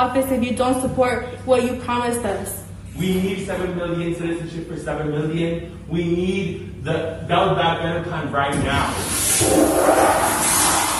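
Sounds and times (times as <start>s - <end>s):
speech: 0.0s - 10.5s
toilet flushing: 8.6s - 10.9s.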